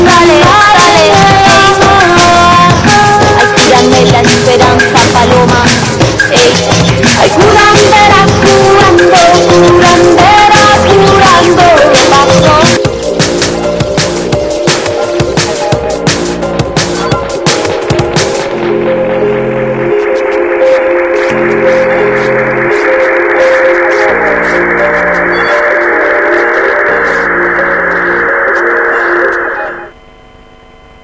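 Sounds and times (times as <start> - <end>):
radio promo spot with song: 0.0 - 30.0.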